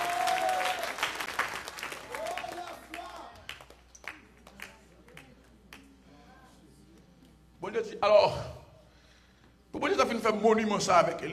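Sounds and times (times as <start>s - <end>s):
audience applauding: 0.0s - 4.8s
speech: 7.8s - 8.5s, 10.2s - 11.3s.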